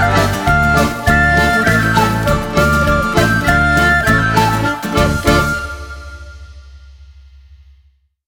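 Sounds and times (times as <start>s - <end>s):
Ukrainian folk music: 0.0s - 6.6s.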